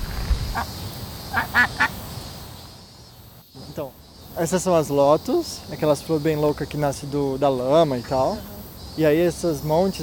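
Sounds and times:
speech: 0.6s - 1.9s, 3.8s - 10.0s
duck quacking in a garden: 1.3s - 2.0s.

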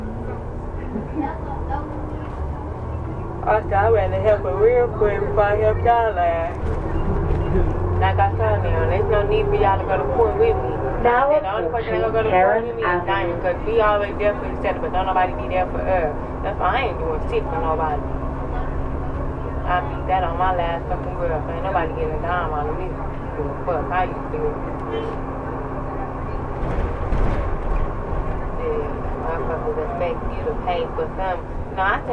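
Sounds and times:
city bus in motion interior noise: 0.0s - 32.1s.

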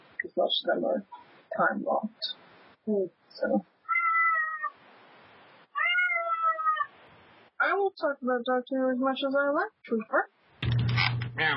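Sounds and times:
speech: 0.3s - 3.7s, 7.8s - 10.4s, 11.4s - 11.5s
cat meowing: 3.8s - 4.8s, 5.7s - 7.0s.

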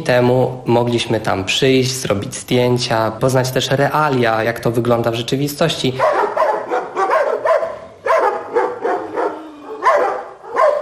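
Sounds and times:
speech: 0.0s - 6.3s
dogs barking: 6.0s - 10.8s.

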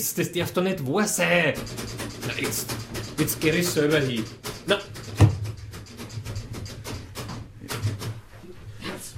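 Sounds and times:
speech: 0.0s - 5.2s
door being rattled and forced open: 1.2s - 8.3s.

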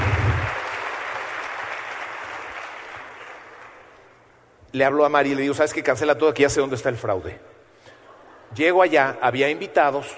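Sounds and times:
audience clapping for an invited guest at a talk: 0.0s - 4.2s
speech: 4.7s - 7.5s, 8.5s - 10.1s.

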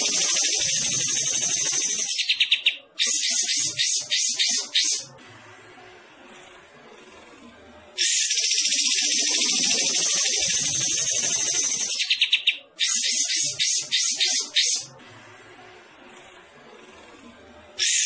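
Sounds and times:
bulbul singing rapid bright chattering notes: 0.0s - 5.0s, 8.0s - 14.9s.

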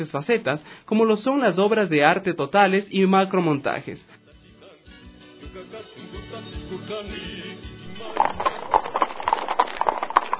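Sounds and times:
speech: 0.0s - 4.2s
horse hooves clip-clopping: 7.8s - 10.3s.

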